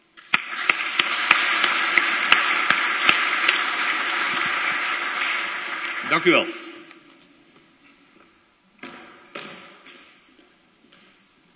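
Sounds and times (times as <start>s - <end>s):
modest applause from a small group in a church: 0.2s - 7.0s
speech: 6.1s - 6.6s.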